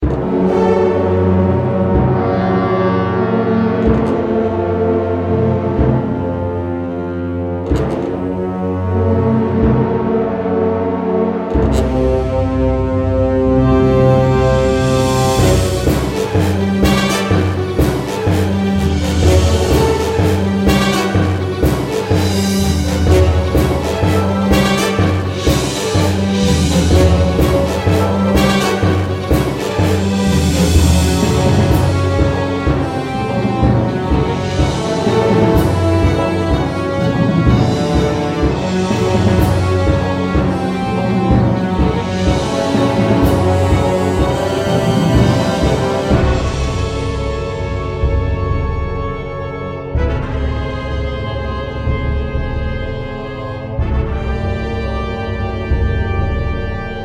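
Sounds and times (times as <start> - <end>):
army march boss music: 0.0 - 57.0.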